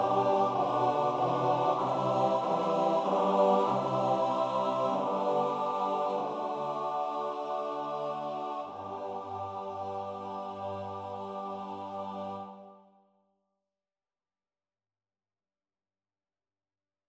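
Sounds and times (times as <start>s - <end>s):
TTBB male choir singing: 0.0s - 12.8s.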